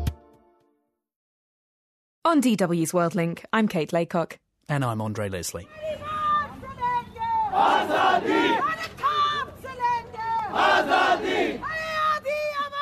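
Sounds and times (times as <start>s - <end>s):
speech: 2.3s - 6.1s
demonstrators shouting: 5.7s - 12.8s
demonstrators in New Delhi chanting against violence on women: 7.4s - 9.4s, 10.2s - 11.8s.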